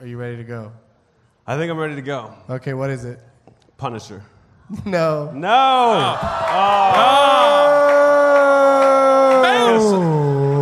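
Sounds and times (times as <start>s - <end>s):
speech: 0.0s - 0.9s, 1.5s - 7.5s, 9.7s - 10.2s
audience booing: 5.6s - 10.6s.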